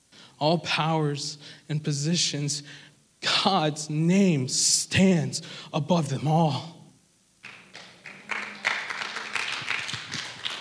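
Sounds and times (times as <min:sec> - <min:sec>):
speech: 0:00.4 - 0:06.8
audience clapping: 0:07.4 - 0:10.6.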